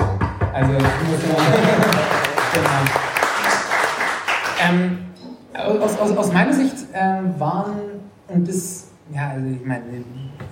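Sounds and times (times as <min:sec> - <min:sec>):
speech: 0:00.6 - 0:02.0, 0:02.6 - 0:03.1, 0:04.6 - 0:05.0, 0:05.7 - 0:10.5
audience applause: 0:00.7 - 0:04.8
laughter: 0:01.0 - 0:03.7.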